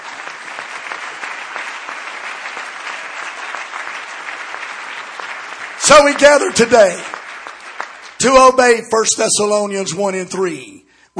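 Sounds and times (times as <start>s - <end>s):
audience applause: 0.0s - 8.6s
speech: 5.9s - 7.1s, 8.2s - 11.1s.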